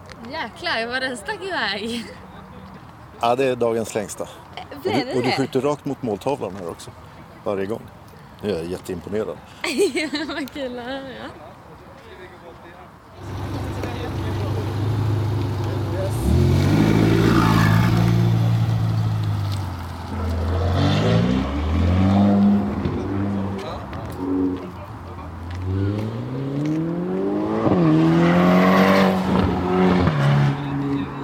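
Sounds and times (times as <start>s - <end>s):
speech: 0.3s - 2.3s, 3.2s - 11.5s
Ferrari sports car engine driving off: 13.2s - 24.7s, 25.5s - 31.2s.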